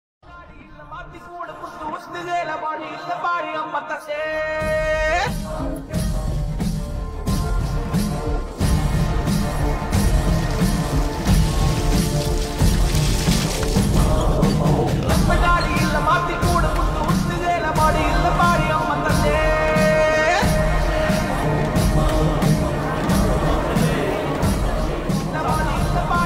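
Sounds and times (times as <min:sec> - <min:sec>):
temple background music: 0:00.3 - 0:26.2.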